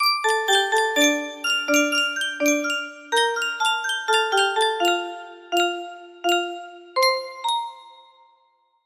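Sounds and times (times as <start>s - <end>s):
music box melody: 0.0s - 8.4s.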